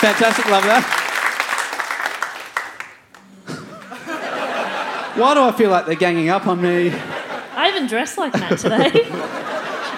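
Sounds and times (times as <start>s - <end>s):
speech: 0.0s - 1.0s, 5.2s - 7.2s, 7.8s - 9.4s
live crowd clapping: 0.0s - 4.6s
laughter: 3.4s - 9.9s.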